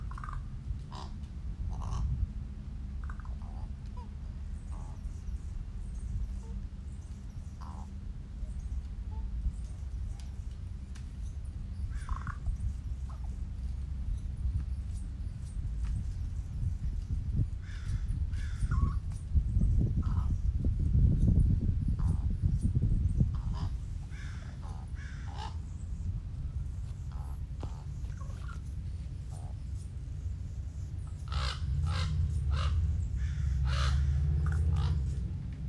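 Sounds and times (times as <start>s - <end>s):
crows cawing: 0.0s - 2.1s, 11.9s - 12.5s, 17.6s - 19.0s, 23.4s - 25.7s, 31.2s - 35.1s
steady low rumble: 0.0s - 35.6s.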